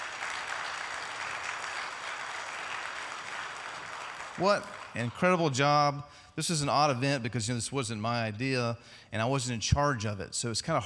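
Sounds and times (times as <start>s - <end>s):
crowd applause: 0.0s - 5.5s
speech: 4.4s - 10.8s.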